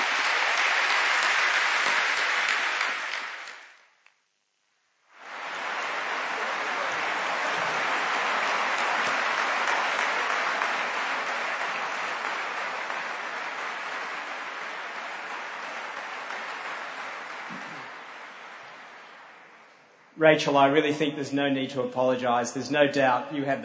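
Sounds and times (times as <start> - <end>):
audience applause: 0.0 - 3.8, 5.2 - 20.0
speech: 20.2 - 23.6.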